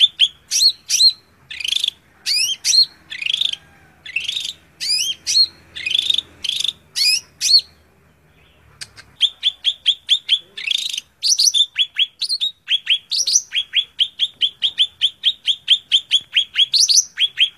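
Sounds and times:
Greater green leafbird song: 0.0 - 17.5.

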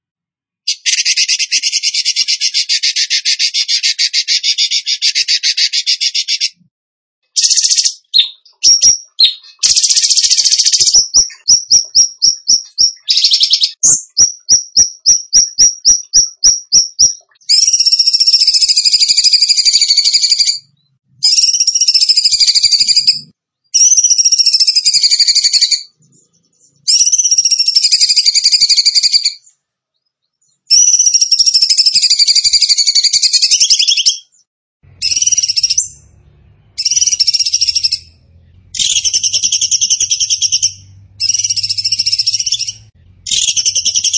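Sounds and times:
bird song trills: 0.7 - 44.1
faint low hum: 34.9 - 44.1.

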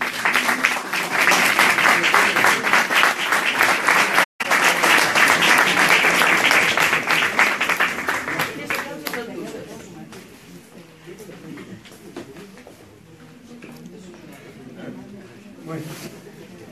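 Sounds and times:
audience applause: 0.0 - 9.4.

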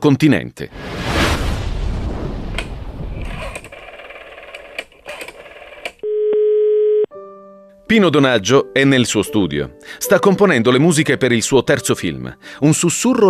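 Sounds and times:
speech: 0.0 - 1.0, 7.9 - 13.2
rumbling noise: 0.7 - 4.2
production office telephone dial tone: 3.8 - 7.1.

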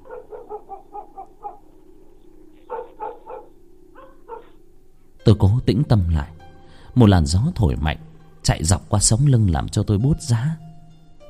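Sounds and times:
dogs barking in a distant village: 0.0 - 5.2
low hum: 0.0 - 5.3
speech: 5.3 - 6.4, 7.0 - 10.7.

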